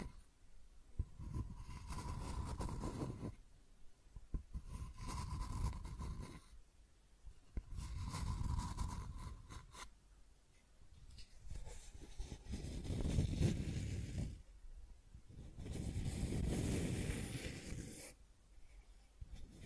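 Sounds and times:
scratching and tracing strokes: 1.1s - 3.4s, 4.5s - 6.6s, 7.5s - 9.9s, 11.2s - 14.4s, 15.3s - 18.2s.

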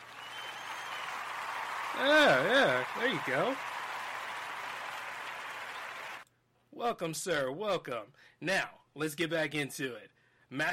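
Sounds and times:
audience clapping to welcome a performer: 0.0s - 6.2s
speech: 1.9s - 3.7s, 6.8s - 10.7s.

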